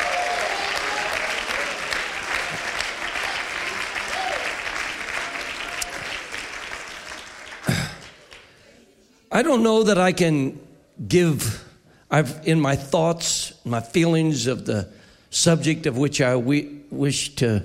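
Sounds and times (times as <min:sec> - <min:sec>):
audience cheering and applauding: 0:00.0 - 0:08.6
speech: 0:09.4 - 0:17.6.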